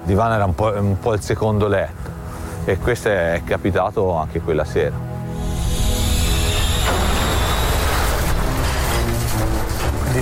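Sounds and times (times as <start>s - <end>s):
speech: 0.1s - 5.1s
passing train: 5.3s - 10.2s
wheels screeching and clanging on rails: 5.4s - 10.2s.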